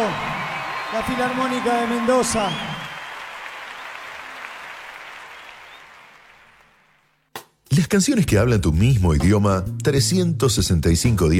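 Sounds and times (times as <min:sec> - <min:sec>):
audience applause: 0:00.0 - 0:07.1
speech: 0:00.9 - 0:02.8, 0:07.8 - 0:11.3.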